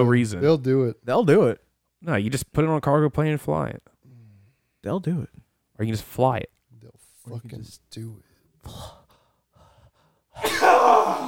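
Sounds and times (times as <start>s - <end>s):
speech: 0.0s - 3.9s, 4.8s - 9.0s, 10.4s - 11.2s
person sneezing: 10.4s - 11.2s.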